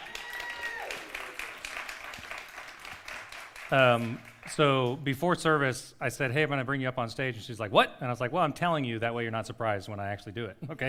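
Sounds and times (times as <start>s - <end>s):
crowd applause: 0.0s - 4.4s
speech: 3.7s - 10.8s.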